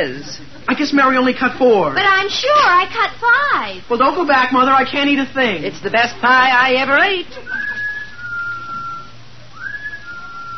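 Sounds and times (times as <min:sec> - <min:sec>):
speech: 0:00.0 - 0:07.6
low constant hum: 0:00.0 - 0:10.5
person whistling a tune: 0:07.5 - 0:10.5.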